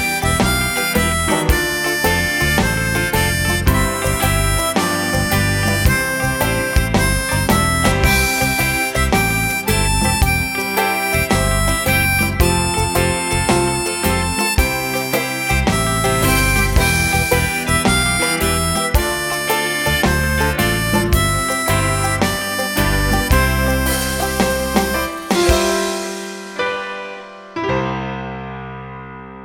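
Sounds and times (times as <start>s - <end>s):
blues harmonica: 0.0s - 27.2s.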